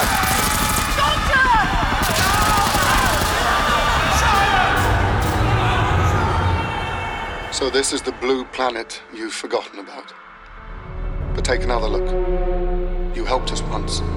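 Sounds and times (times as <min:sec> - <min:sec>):
rapid gunfire in a science-fiction drama: 0:00.0 - 0:06.6
crowd noise: 0:00.0 - 0:08.8
speech: 0:07.6 - 0:10.3, 0:11.4 - 0:12.5, 0:13.2 - 0:14.1.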